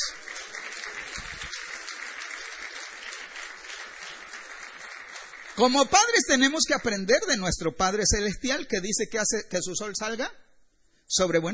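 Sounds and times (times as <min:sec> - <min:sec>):
audience applause: 0:00.0 - 0:06.3
speech: 0:05.6 - 0:10.4, 0:11.1 - 0:11.5.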